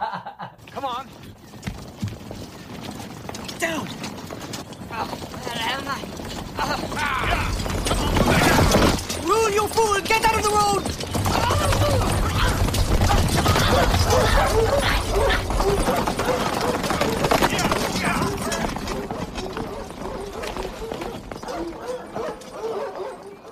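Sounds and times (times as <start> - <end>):
steady clatter: 0.6 - 23.4
busy rumbling background: 1.1 - 22.6
speech: 3.6 - 4.1, 5.0 - 8.2, 9.5 - 11.0
dogs barking: 11.3 - 23.4.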